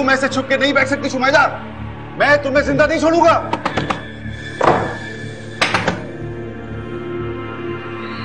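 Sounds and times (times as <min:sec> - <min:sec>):
speech: 0:00.0 - 0:04.0
heavy dull banging on a locked door: 0:04.6 - 0:06.1.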